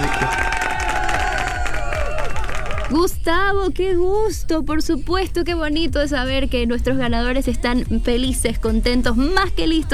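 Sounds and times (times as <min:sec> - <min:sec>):
audience applause and cheering: 0:00.0 - 0:03.0
speech: 0:02.9 - 0:09.9.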